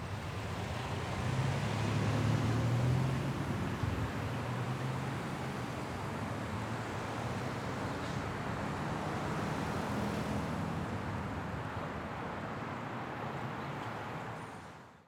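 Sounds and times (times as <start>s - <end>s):
traffic at an intersection: 0.0s - 15.0s.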